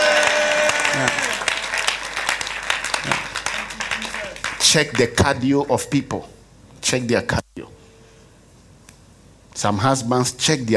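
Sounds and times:
audience shouting amen: 0.0 - 2.1
audience clapping hands: 0.0 - 5.2
speech: 4.7 - 7.4, 9.6 - 10.7.

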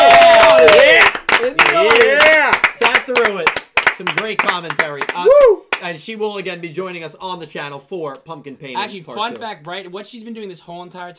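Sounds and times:
whooping voices: 0.0 - 2.5, 5.2 - 5.7
audience applause: 0.0 - 5.6
speech: 6.1 - 11.1.

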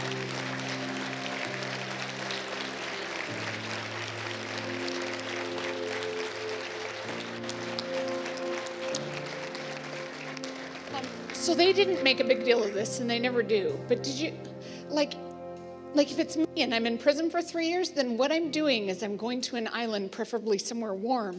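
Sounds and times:
audience clapping: 0.0 - 13.4
speech: 11.4 - 15.2, 15.9 - 21.3.

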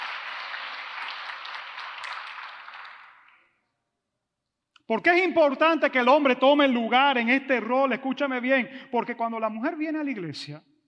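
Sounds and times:
audience applause: 0.0 - 3.4
speech: 4.9 - 10.7.

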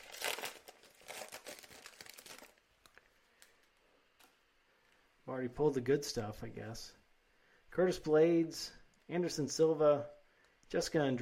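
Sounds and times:
2022 Panini Optic UFC trading card pack wrapper crinkling and tearing: 0.0 - 3.6
speech: 5.3 - 7.0, 7.7 - 11.2.

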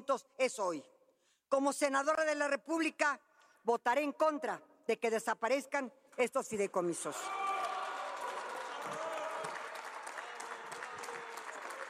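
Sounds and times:
speech: 0.0 - 0.9, 1.5 - 7.5
applause in a legislative chamber: 7.2 - 11.8.

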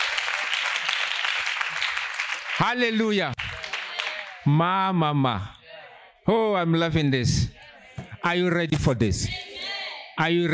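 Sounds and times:
crowd clapping hands: 0.0 - 4.6
speech: 2.6 - 3.5, 4.4 - 5.6, 6.3 - 7.6, 8.2 - 9.4, 10.2 - 10.5.

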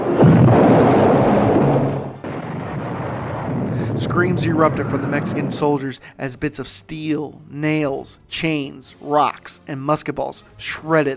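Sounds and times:
cannon firing with a loud boom: 0.0 - 5.7
speech: 4.2 - 11.1.

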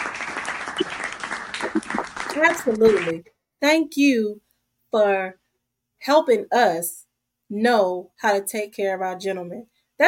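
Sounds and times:
clapping: 0.0 - 3.2
speech: 1.8 - 5.4, 6.0 - 10.0.

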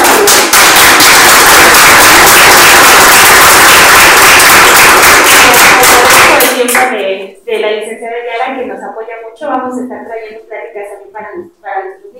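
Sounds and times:
crowd clapping: 0.0 - 7.0
speech: 7.6 - 12.1.

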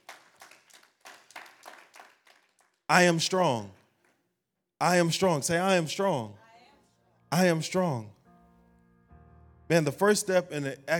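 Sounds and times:
audience clapping hands in praise: 0.0 - 4.2
speech: 2.9 - 3.8, 4.8 - 6.4, 7.3 - 8.2, 9.7 - 10.9.

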